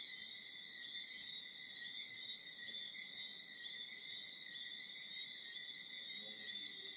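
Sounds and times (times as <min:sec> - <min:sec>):
tree frogs calling in Bermuda: 0:00.0 - 0:06.9.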